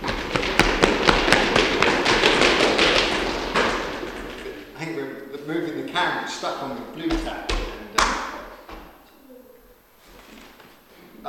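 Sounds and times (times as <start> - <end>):
audience stomping feet on the floor: 0.0 - 4.8, 6.6 - 9.0
speech: 6.0 - 7.7.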